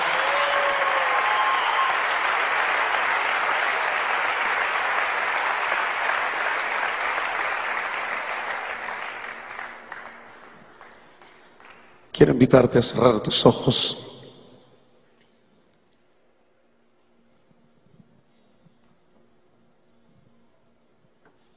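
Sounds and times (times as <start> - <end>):
audience applause for a performer: 0.0 - 11.9
speech: 12.2 - 14.1.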